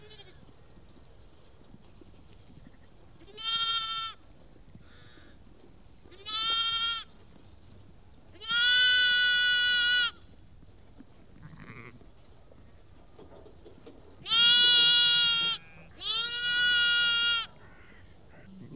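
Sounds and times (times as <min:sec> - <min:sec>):
flock of ewes and lambs bleating: 0:00.0 - 0:00.4, 0:02.7 - 0:04.2, 0:06.1 - 0:07.1, 0:08.3 - 0:10.2, 0:11.4 - 0:12.1, 0:14.2 - 0:18.7.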